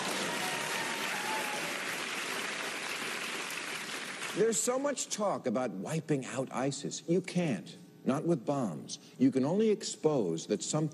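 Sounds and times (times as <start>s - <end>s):
crowd applause: 0.0s - 4.4s
speech: 4.4s - 10.9s.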